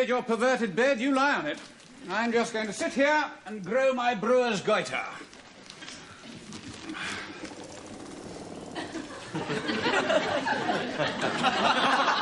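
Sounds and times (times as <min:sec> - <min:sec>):
speech: 0:00.0 - 0:05.4, 0:09.3 - 0:12.2
generator vibrating and rumbling: 0:07.0 - 0:10.7
laughter: 0:08.7 - 0:12.2.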